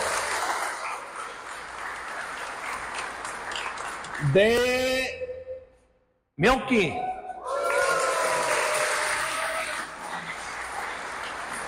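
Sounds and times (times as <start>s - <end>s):
audience applause: 0.0s - 4.1s, 7.5s - 11.6s
speech: 4.2s - 5.1s, 6.4s - 7.1s.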